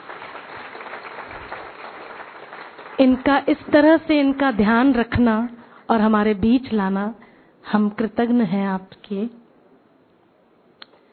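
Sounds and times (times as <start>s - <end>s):
audience applause: 0.0s - 3.5s
speech: 3.0s - 9.4s.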